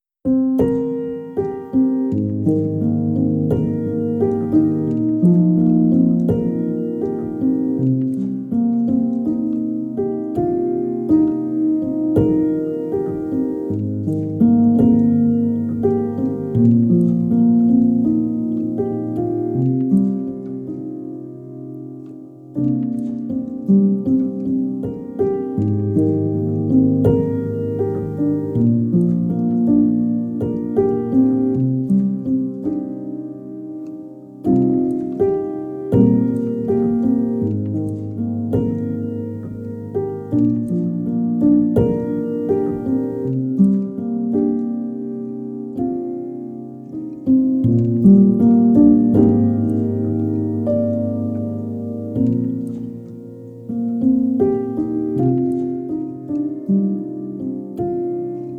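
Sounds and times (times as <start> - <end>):
piano: 0.0 - 58.5.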